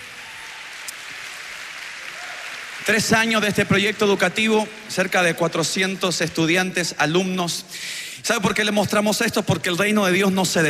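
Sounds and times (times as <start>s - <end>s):
church congregation applauding: 0.0s - 6.4s
speech: 2.8s - 10.6s.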